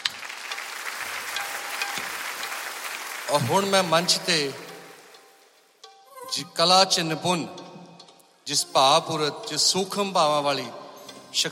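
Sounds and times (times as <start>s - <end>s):
audience applauding a sung performance: 0.0s - 5.2s
speech: 3.3s - 4.6s, 6.4s - 7.6s, 8.5s - 11.4s.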